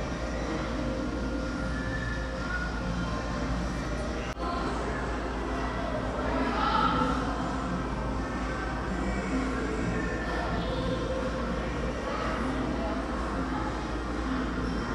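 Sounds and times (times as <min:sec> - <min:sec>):
faint music in a mall: 0:00.0 - 0:14.9
mall crowd murmur: 0:00.0 - 0:14.9.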